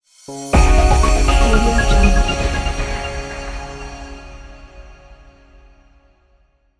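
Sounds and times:
uplifting logo music: 0.4 - 5.4.

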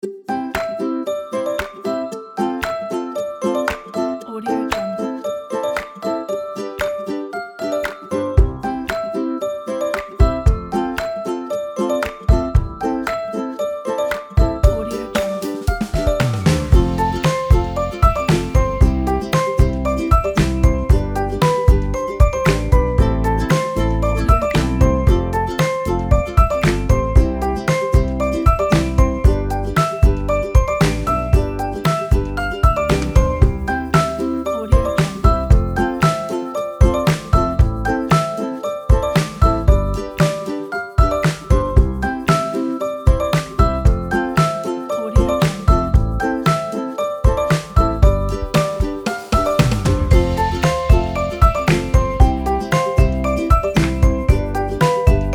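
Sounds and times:
happy mood music: 0.0 - 55.3.

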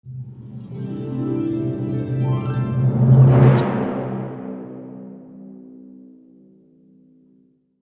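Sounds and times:
triumphant orchestral ident: 0.1 - 5.2.

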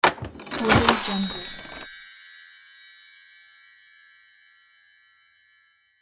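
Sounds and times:
magic chest opening: 0.0 - 1.9.

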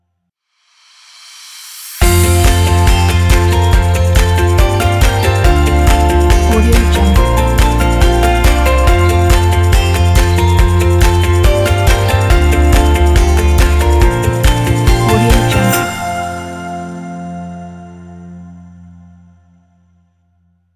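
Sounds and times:
upbeat indie folk music: 2.0 - 16.4.

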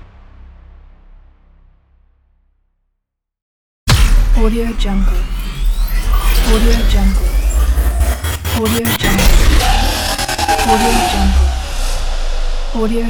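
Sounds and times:
cyber transform riser: 3.9 - 13.0.

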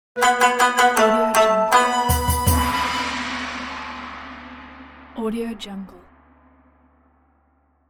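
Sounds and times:
traditional Asian logo jingle: 0.2 - 5.2.

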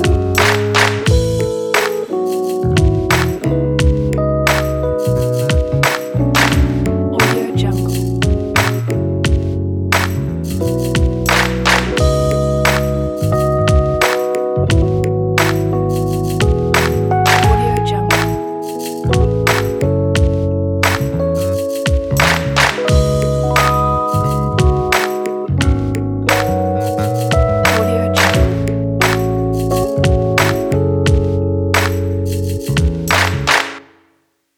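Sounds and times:
feel good neo soul music: 0.0 - 33.8.

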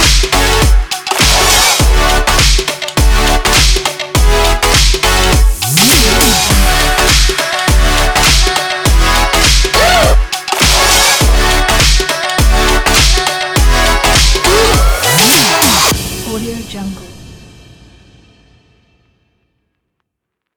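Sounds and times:
dance funk music: 0.0 - 16.1.

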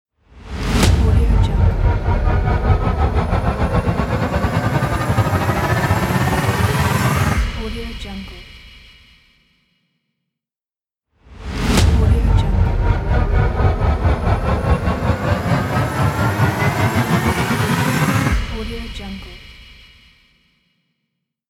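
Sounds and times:
tension building music: 0.3 - 8.1, 11.3 - 19.7.

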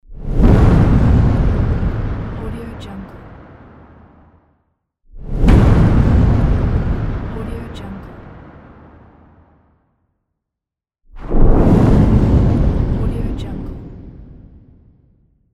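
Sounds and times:
big explosion: 0.1 - 4.6, 5.2 - 10.0, 11.2 - 15.4.

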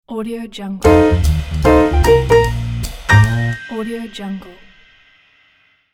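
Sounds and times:
jazz logo jingle: 0.8 - 4.1.

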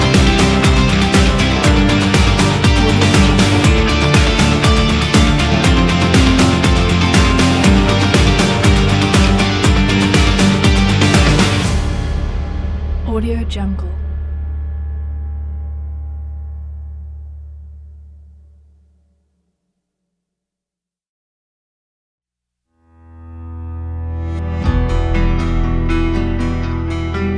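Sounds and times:
cinematic motivational rock music: 0.0 - 16.2, 23.1 - 27.3.

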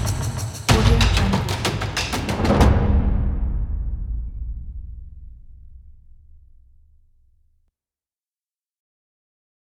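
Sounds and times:
African safari drums: 0.0 - 6.6.

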